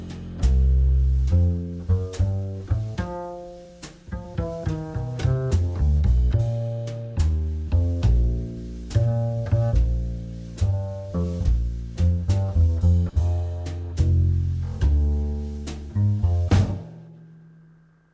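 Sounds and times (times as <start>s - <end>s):
jazz backing track in A-flat: 0.0s - 17.7s.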